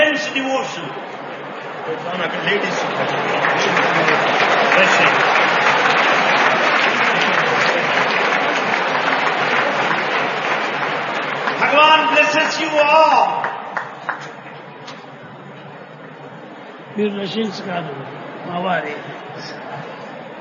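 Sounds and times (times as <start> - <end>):
speech: 0.4 - 1.2, 1.9 - 3.8, 4.8 - 5.4, 11.7 - 13.5, 17.0 - 19.9
devotees clapping: 2.3 - 15.1.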